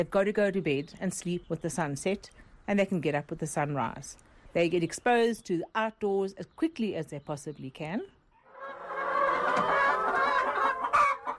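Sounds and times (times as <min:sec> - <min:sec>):
speech: 0:00.0 - 0:08.2
chickens clucking in a barn: 0:08.4 - 0:11.3.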